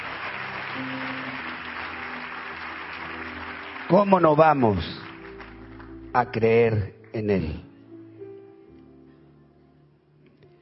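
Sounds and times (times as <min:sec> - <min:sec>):
applause: 0:00.0 - 0:07.3
speech: 0:03.9 - 0:05.0, 0:06.1 - 0:07.7.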